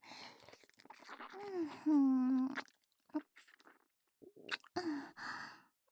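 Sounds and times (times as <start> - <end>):
ear licking: 0.3 - 4.8.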